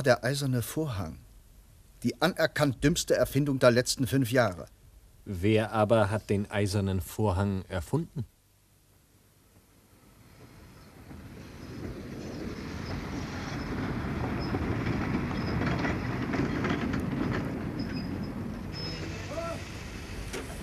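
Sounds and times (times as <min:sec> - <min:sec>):
speech: 0:00.0 - 0:01.2, 0:02.0 - 0:08.3
express train rumbling along the rails: 0:09.9 - 0:20.6
high squeals of wheels over the tracks: 0:10.4 - 0:20.6.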